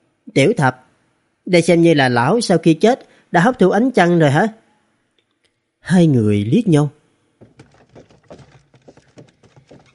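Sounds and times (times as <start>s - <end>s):
speech: 0.4s - 0.8s, 1.5s - 4.6s, 5.8s - 7.0s
hooves of an ox pulling a cart clip-clopping: 7.4s - 9.9s.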